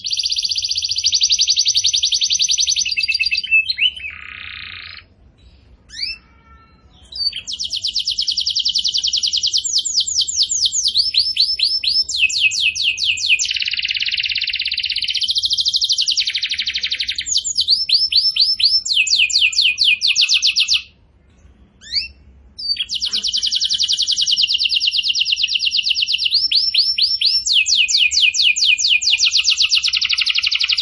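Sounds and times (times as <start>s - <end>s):
bird singing: 0.0s - 30.7s.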